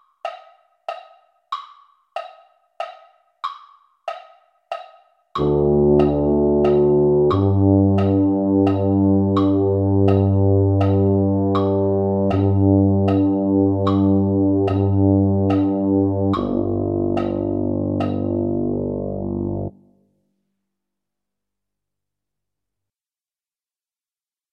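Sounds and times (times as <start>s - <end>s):
tuba: 5.4s - 19.9s.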